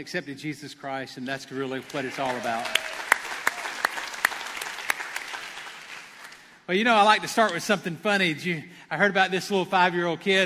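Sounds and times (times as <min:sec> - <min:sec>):
speech: 0:00.0 - 0:03.1, 0:06.7 - 0:10.4
audience applause: 0:01.6 - 0:06.5.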